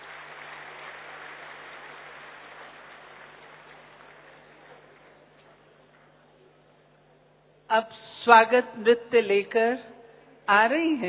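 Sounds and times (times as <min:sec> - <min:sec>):
audience applause at a ceremony presenting a memento to an honoured elder: 0:00.0 - 0:05.8
speech: 0:07.7 - 0:09.9, 0:10.5 - 0:11.0.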